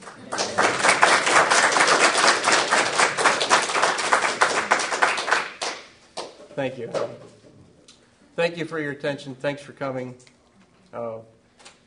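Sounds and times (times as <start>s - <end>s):
audience clapping: 0.0s - 6.4s
speech: 6.6s - 7.4s, 8.4s - 10.3s, 10.9s - 11.4s.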